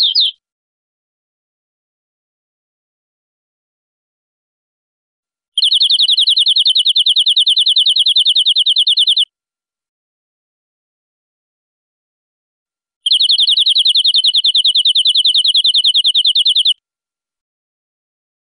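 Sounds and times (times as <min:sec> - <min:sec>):
European greenfinch buzzy trill: 0:00.0 - 0:00.4, 0:05.6 - 0:09.2, 0:13.1 - 0:16.8.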